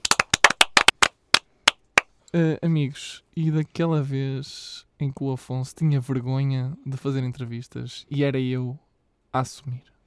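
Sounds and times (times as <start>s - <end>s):
hand clapping: 0.0s - 2.1s
speech: 2.3s - 9.9s.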